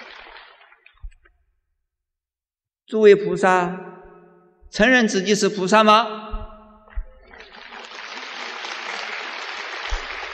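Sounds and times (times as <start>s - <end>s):
crowd applauding: 0.0s - 0.8s, 7.2s - 10.3s
speech: 2.9s - 3.9s, 4.7s - 6.3s.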